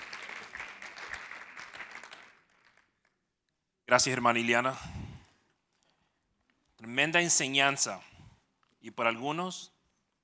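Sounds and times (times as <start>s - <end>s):
audience applauding: 0.0s - 3.2s
speech: 3.9s - 5.0s, 7.0s - 8.1s, 8.8s - 9.7s.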